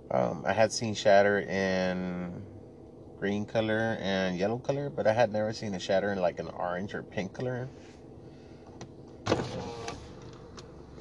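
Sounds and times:
speech: 0.1 - 2.5, 3.2 - 8.0
car window being rolled down and up: 9.2 - 10.7.

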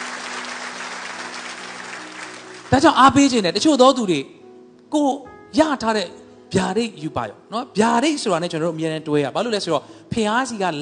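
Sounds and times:
congregation clapping hands in praise during a Sunday afternoon sermon: 0.0 - 3.4
speech: 2.7 - 10.8.

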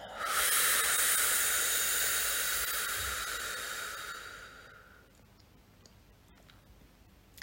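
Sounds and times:
slow breathing during a guided meditation: 0.0 - 5.1.

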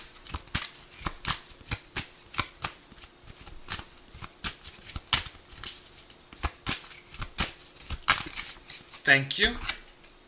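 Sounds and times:
tarot cards being shuffled in crisp riffles: 0.0 - 9.9
speech: 9.1 - 9.7.

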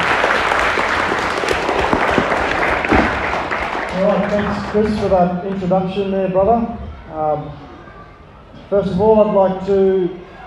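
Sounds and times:
audience round of applause: 0.0 - 5.6
speech: 4.3 - 7.7, 8.6 - 10.3.

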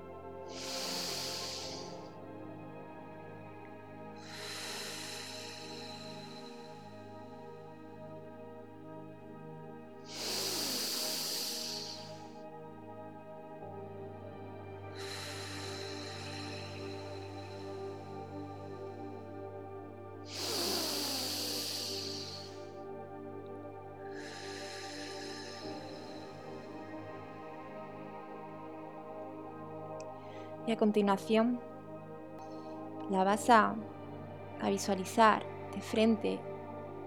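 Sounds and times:
deep inhales during a guided breathing exercise: 0.0 - 30.6
steady sustained tonal drone: 0.0 - 37.0
speech: 30.7 - 31.7, 33.1 - 34.0, 34.6 - 36.5.

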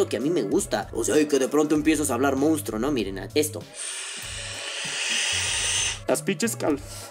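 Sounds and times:
speech: 0.0 - 4.0, 6.1 - 7.0
vaporizer vapor drawn into the lungs: 3.7 - 6.1.

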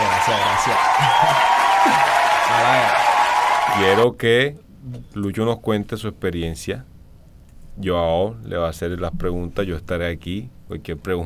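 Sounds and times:
crowd applause: 0.0 - 4.0
laughter: 0.0 - 4.0
speech: 0.3 - 3.0, 3.8 - 6.9, 7.8 - 11.2.

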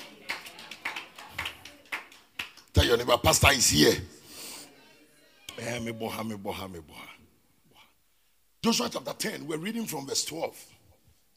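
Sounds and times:
church congregation clapping during a sermon: 0.0 - 3.8
speech: 2.9 - 4.1, 5.6 - 7.1, 8.6 - 10.8.

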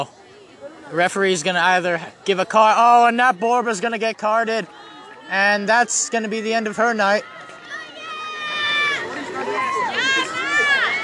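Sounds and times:
speech: 0.9 - 7.5
soccer crowd cheering: 2.4 - 11.0.

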